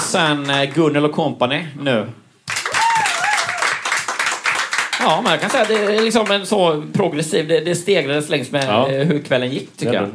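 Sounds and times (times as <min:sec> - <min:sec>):
speech: 0:00.1 - 0:02.2, 0:05.0 - 0:10.1
audience applause: 0:02.5 - 0:06.5
faint cheer or whoop: 0:02.6 - 0:04.1.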